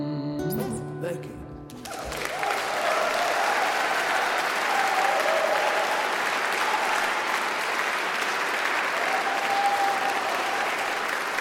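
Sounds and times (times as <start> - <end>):
speech: 0.4 - 1.4
large concert crowd applauding: 1.7 - 11.3
concert crowd whistles and cheers: 1.8 - 11.3.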